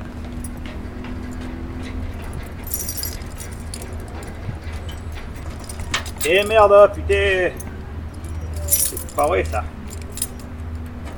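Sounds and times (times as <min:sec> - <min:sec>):
keys jangling while trying a key in a lock: 0:00.4 - 0:11.1
constant noisy low rumble: 0:02.0 - 0:10.5
speech: 0:06.2 - 0:07.6, 0:09.2 - 0:09.8.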